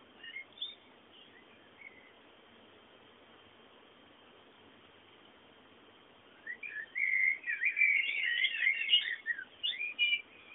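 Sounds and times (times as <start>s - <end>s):
bird singing with high twittering and warbled notes: 0.0s - 2.3s, 6.3s - 10.5s.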